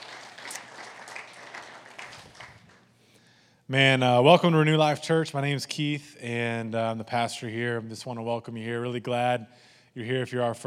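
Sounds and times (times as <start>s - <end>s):
audience hand clapping: 0.0s - 2.9s
speech: 3.7s - 10.6s.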